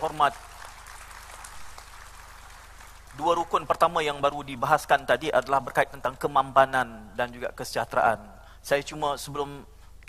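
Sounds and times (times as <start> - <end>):
speech: 0.0 - 0.5, 3.2 - 10.0
crowd clapping: 0.0 - 4.4
low electrical hum: 0.0 - 10.0.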